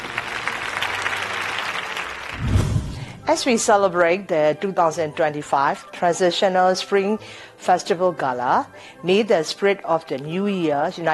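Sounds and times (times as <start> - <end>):
audience at a Spring Festival gala clapping: 0.0 - 3.1
speech: 3.3 - 11.1.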